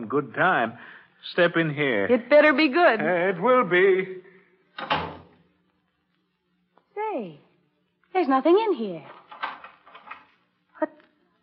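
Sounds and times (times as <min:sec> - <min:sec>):
speech: 0:00.0 - 0:05.1, 0:07.1 - 0:07.4, 0:08.1 - 0:09.2
door being locked: 0:04.8 - 0:05.4, 0:09.1 - 0:10.4.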